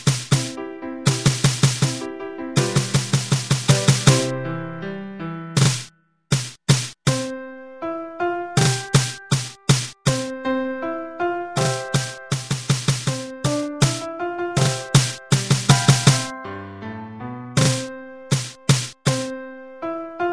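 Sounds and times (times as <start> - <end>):
drum: 0.0 - 4.2, 5.6 - 7.2, 8.6 - 10.3, 11.6 - 16.3, 17.6 - 19.3
piano: 0.0 - 6.0, 7.1 - 20.3.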